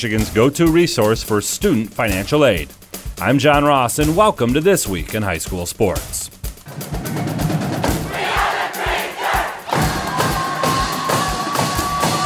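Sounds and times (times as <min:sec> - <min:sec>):
speech: 0:00.0 - 0:07.2
Traverse City West student fans roaring at 2022 Battle of the Fans: 0:06.7 - 0:12.2
student fans' rhythmic pulsing chants: 0:07.9 - 0:12.2.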